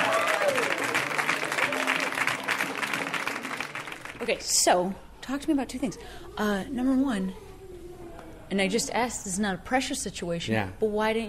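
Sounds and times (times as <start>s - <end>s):
audience applause for a comedian: 0.0s - 4.3s
faint crowd noise: 0.0s - 4.3s
speech: 4.2s - 7.4s, 8.5s - 11.2s.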